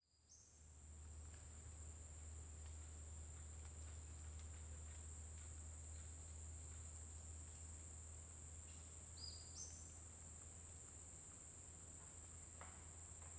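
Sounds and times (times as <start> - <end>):
cricket chirping in a forest during the day: 0.1 - 13.3.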